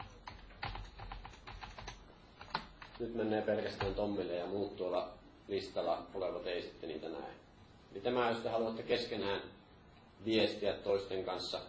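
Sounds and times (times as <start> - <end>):
computer keyboard typing a private chat message: 0.0 - 3.0
speech: 3.0 - 9.6, 10.2 - 11.6.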